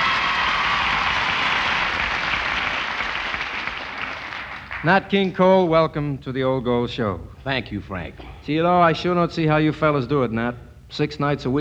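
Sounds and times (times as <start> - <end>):
audience applause welcoming a singer: 0.0 - 5.2
speech: 4.8 - 11.5.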